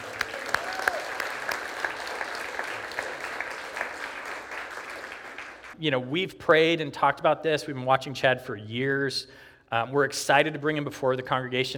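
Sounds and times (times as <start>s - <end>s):
audience applause: 0.0s - 5.8s
speech: 5.8s - 11.7s.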